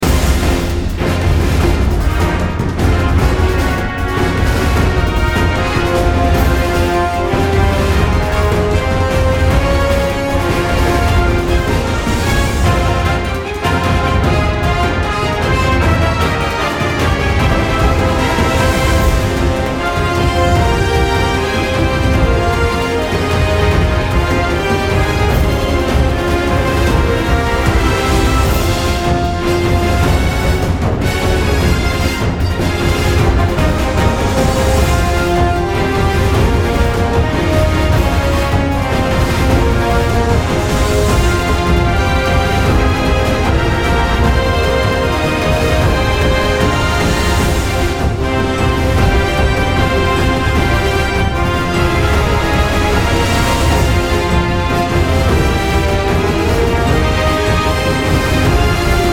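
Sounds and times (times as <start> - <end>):
boss battle music: 0.0 - 59.1.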